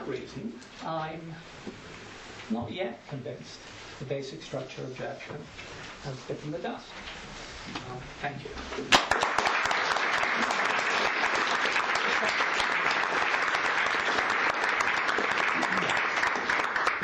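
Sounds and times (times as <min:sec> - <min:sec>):
speech: 0:00.1 - 0:09.3
audience applause: 0:08.9 - 0:17.0.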